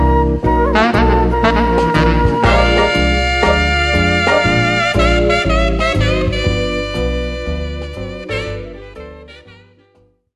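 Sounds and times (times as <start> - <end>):
baritone saxophone: 0.7 - 9.9.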